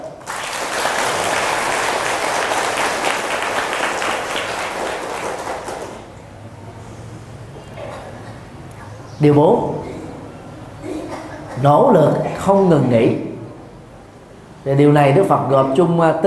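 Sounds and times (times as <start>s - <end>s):
audience applause: 0.0s - 6.1s
speech: 9.2s - 9.9s, 11.6s - 13.3s, 14.6s - 16.2s.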